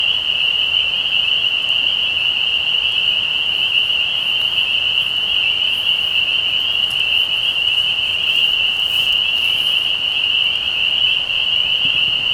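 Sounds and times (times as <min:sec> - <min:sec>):
spring peepers in a dense chorus: 0:00.2 - 0:12.3.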